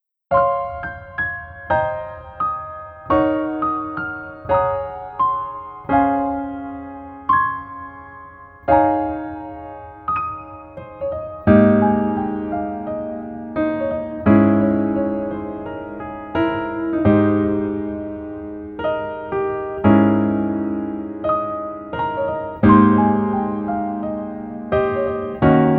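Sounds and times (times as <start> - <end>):
piano melody backing track: 0.3 - 25.7.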